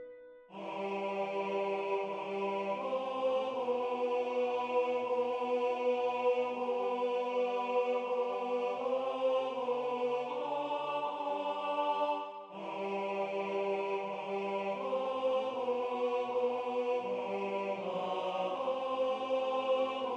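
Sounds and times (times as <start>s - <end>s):
tenor singing: 0.5s - 20.1s.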